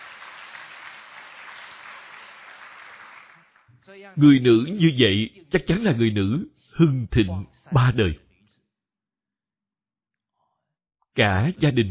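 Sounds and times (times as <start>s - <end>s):
audience applause during a spoken talk: 0.0s - 4.7s
speech: 3.9s - 8.2s, 11.2s - 11.8s.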